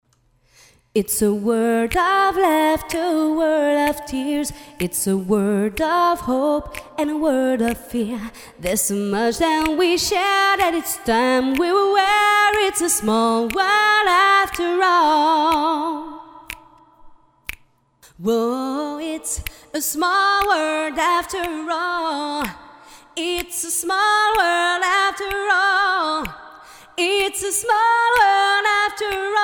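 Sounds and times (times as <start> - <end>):
a cappella singing: 1.0 - 17.0, 18.1 - 29.4.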